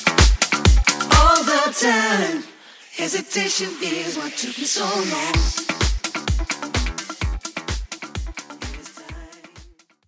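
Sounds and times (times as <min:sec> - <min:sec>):
electronic house music at 128 bpm: 0:00.0 - 0:09.9.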